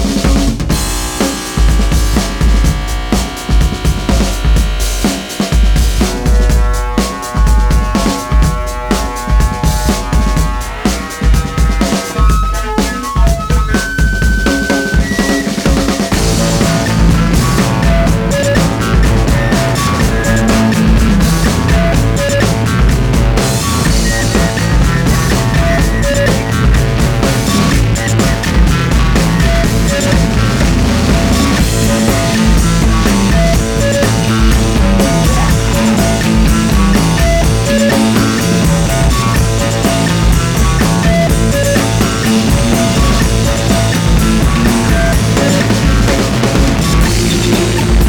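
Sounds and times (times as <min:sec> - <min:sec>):
Casio keyboard bossa nova rhythm: 0:00.1 - 0:48.0.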